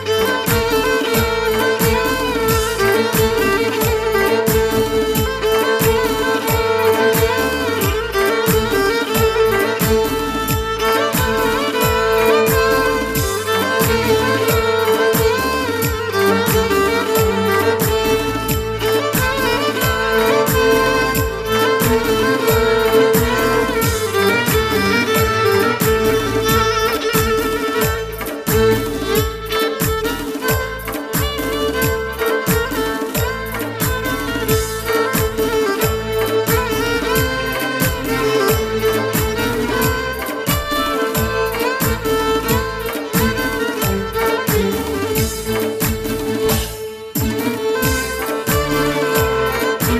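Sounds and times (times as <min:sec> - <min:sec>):
violin: 0:00.0 - 0:49.9.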